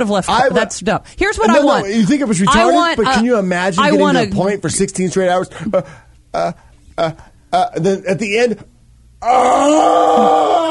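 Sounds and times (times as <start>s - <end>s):
speech: 0.0s - 10.6s
guttural wailing moan from a human voice: 9.2s - 10.6s.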